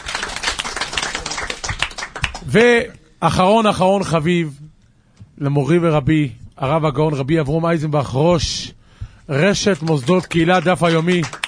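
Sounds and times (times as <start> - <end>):
audience clapping: 0.0 - 2.8, 9.4 - 11.4
speech: 2.5 - 4.7, 5.4 - 11.4.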